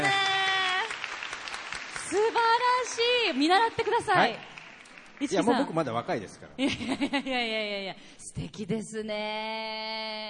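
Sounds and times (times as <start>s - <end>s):
audience applause: 0.0s - 6.0s
speech: 2.9s - 4.5s, 5.2s - 10.2s.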